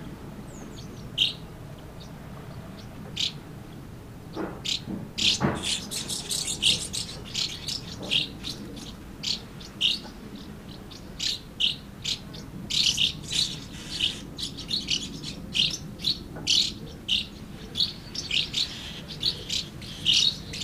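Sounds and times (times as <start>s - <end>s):
swallows giving short chirps and twitters: 0.4s - 20.6s.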